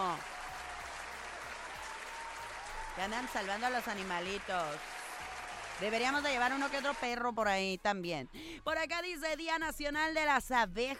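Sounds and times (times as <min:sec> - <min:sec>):
soft applause: 0:00.0 - 0:07.2
speech: 0:03.0 - 0:05.0, 0:05.8 - 0:10.9.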